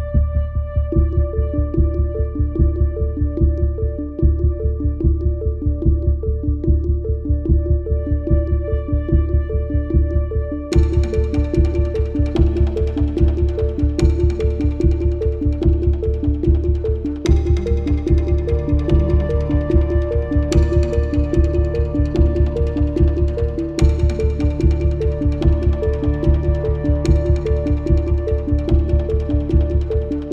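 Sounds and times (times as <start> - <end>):
tense rising music: 0.2 - 30.3.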